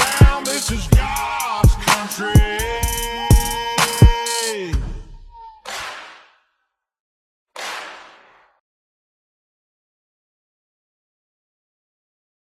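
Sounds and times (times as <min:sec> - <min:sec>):
scratch track music: 0:00.0 - 0:04.6.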